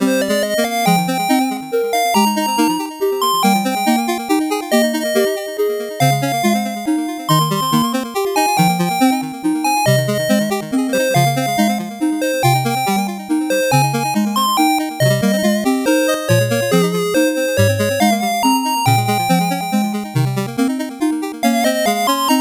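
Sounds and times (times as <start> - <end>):
slow 8-bit background music: 0.0 - 22.3.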